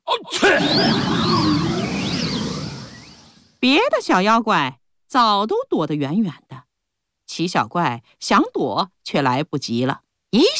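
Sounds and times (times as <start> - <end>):
giant's huge exaggerated sneeze: 0.1 - 0.9
speech: 0.5 - 1.6, 3.6 - 6.4, 7.3 - 10.5.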